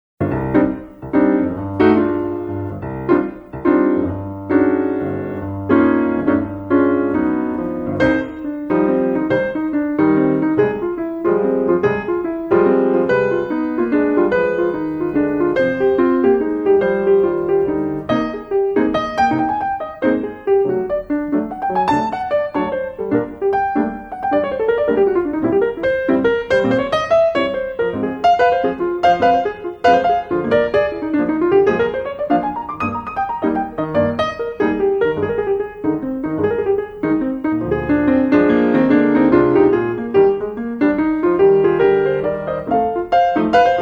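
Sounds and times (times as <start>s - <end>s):
jazz arrangement of baroque music: 0.2s - 43.8s.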